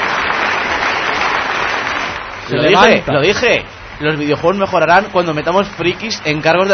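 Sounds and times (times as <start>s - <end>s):
whole auditorium applauding: 0.0s - 3.6s
speech: 2.5s - 6.7s.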